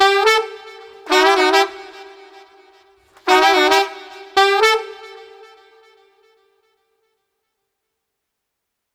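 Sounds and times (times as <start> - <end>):
street sax and trombone combo playing upbeat music without drums: 0.0 - 6.0.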